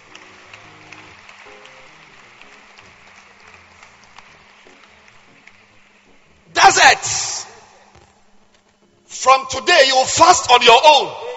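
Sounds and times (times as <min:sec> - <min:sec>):
audience clapping: 0:00.0 - 0:06.8
speech: 0:06.7 - 0:07.4, 0:09.2 - 0:11.2.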